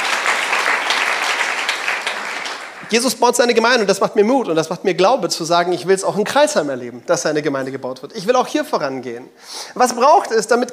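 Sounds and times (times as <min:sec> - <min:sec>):
congregation applauding during a church service: 0:00.0 - 0:03.2
speech: 0:02.9 - 0:10.7.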